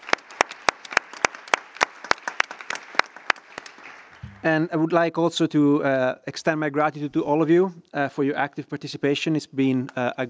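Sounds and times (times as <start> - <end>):
audience round of applause: 0.0 - 4.6
speech: 4.4 - 10.2.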